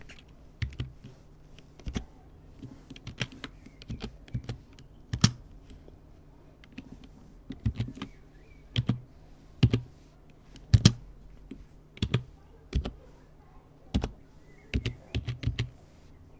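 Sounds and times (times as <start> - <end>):
typing: 2.9 - 5.4, 7.5 - 9.0, 9.6 - 9.9, 12.0 - 13.0, 13.9 - 15.7.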